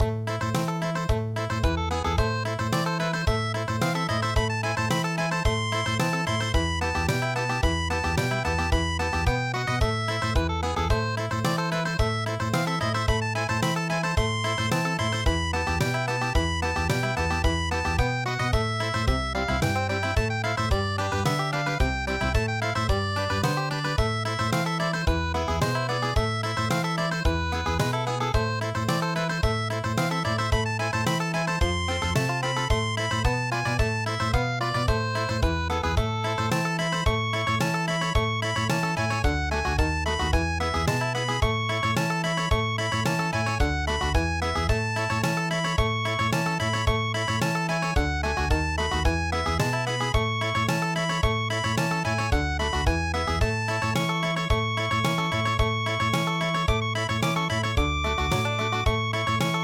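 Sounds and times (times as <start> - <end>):
country music: 0.0 - 59.6.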